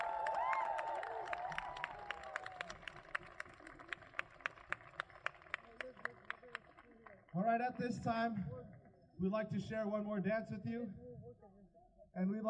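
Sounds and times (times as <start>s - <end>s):
audience applause after hoop dance: 0.0s - 7.5s
speech: 7.4s - 8.6s, 9.2s - 11.0s, 12.2s - 12.4s.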